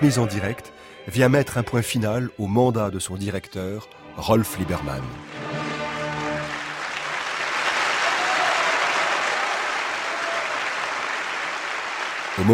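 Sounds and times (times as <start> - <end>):
speech: 0.0 - 5.4, 12.4 - 12.5
sustained musical chord: 3.8 - 7.7
large audience applause at opera farewell: 5.4 - 12.5.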